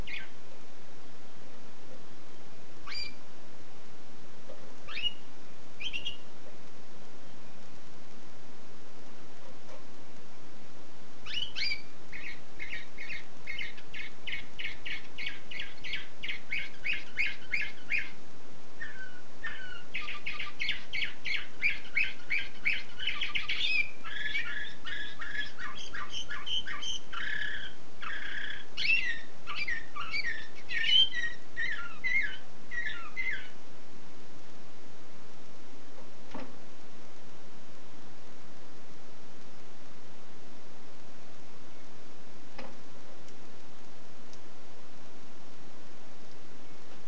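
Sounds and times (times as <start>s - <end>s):
canary song: 0.0s - 10.4s, 11.1s - 33.8s
hiss: 0.0s - 47.0s
faint clicks: 42.5s - 44.5s.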